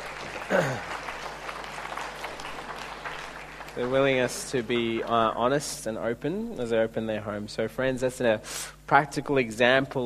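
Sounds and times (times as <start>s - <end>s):
soft clapping for a couple: 0.0s - 5.1s
speech: 0.5s - 0.9s, 3.8s - 10.0s.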